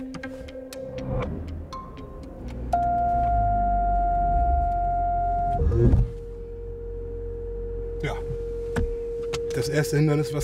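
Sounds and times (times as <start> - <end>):
car engine rumbling: 0.0 - 10.4
car automatic emergency braking electronic warning tone: 2.7 - 10.4
speech: 9.6 - 10.4.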